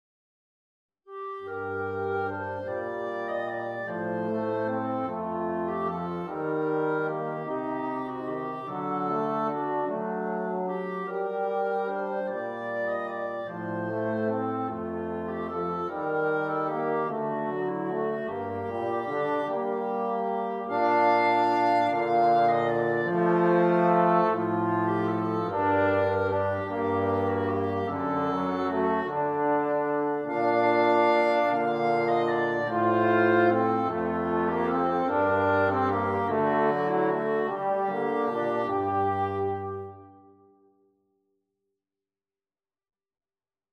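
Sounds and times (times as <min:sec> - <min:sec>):
flexible mixed ensemble of three players: 0:01.4 - 0:40.3.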